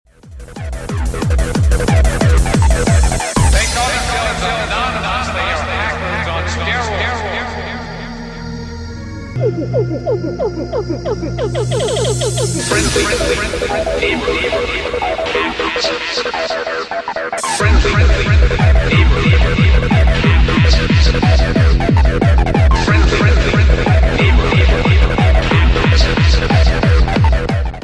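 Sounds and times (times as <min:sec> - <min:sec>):
techno music: 0:00.1 - 0:08.1, 0:09.4 - 0:27.8.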